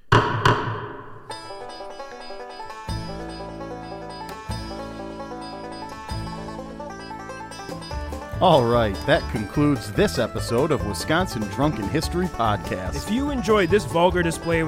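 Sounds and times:
gavel knocks: 0.0s - 1.4s
soft melodic music with chord swells: 1.3s - 14.6s
speech: 8.4s - 14.6s.

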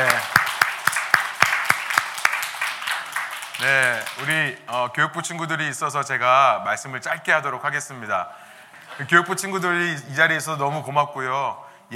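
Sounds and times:
audience applause: 0.0s - 4.9s
speech: 3.6s - 11.9s.

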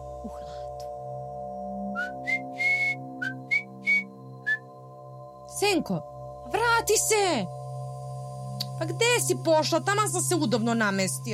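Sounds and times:
soft sustained musical background: 0.0s - 11.3s
woman whistling a tune: 1.9s - 4.7s
speech: 5.6s - 7.6s, 8.8s - 11.3s.

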